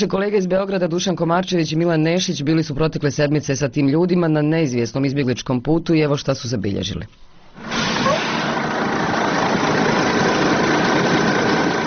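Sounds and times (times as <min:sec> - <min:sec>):
speech: 0:00.0 - 0:07.8
bus engine idling near the Horgoš border crossing: 0:07.3 - 0:11.8.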